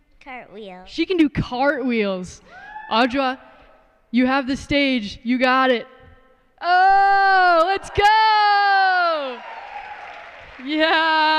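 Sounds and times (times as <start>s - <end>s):
speech: 0.2s - 3.5s, 4.1s - 5.9s, 6.6s - 8.7s, 10.6s - 11.3s
cheering whoops: 2.5s - 2.9s, 6.9s - 11.3s
audience applause: 8.9s - 11.3s.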